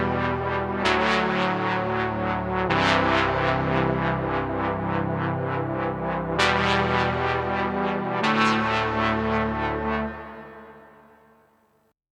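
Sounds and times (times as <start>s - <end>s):
JP08 synthesizer brass with LFO: 0.0s - 11.4s.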